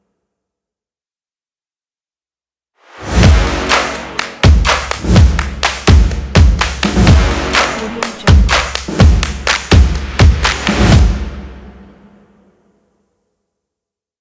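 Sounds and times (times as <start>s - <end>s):
clapping: 3.6s - 10.9s.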